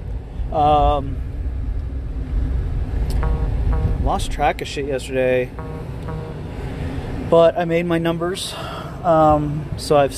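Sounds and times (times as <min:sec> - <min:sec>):
car on the road during a food delivery run: 0:00.0 - 0:10.1
speech: 0:00.5 - 0:01.3, 0:04.0 - 0:06.2, 0:07.3 - 0:10.1
brief tonal sound: 0:03.1 - 0:04.3, 0:05.5 - 0:06.6.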